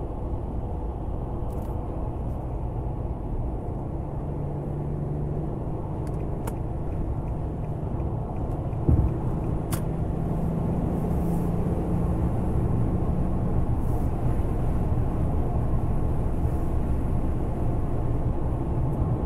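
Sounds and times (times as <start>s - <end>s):
car engine and road rumble while driving: 0.0s - 19.2s
sharp thump: 8.8s - 9.2s.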